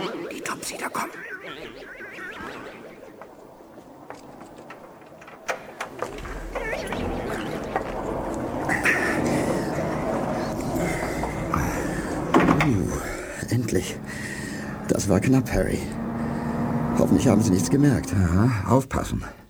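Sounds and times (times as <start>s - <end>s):
laughter: 0.0s - 4.8s, 5.6s - 19.2s
faint clicks: 0.3s - 18.2s
speech: 0.6s - 2.8s, 15.1s - 16.0s, 17.0s - 19.4s
lift descending toward the basement with low rumble and hum: 1.1s - 19.4s
elevator doors clacking shut in a post office: 3.2s - 18.5s.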